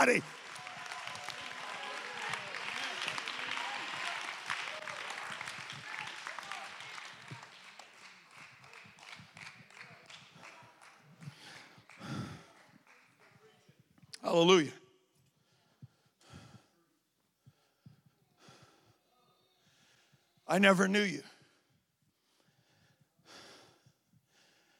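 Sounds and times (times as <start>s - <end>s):
speech: 0.0s - 0.4s, 14.3s - 14.8s, 20.5s - 21.3s
audience clapping hands: 0.0s - 14.4s.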